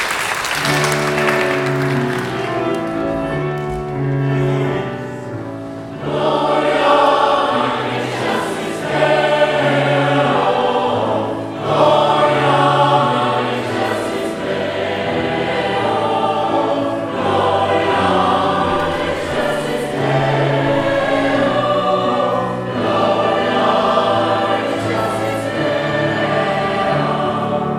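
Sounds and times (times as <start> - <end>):
Christmas fanfare: 0.2 - 4.9, 6.0 - 27.6.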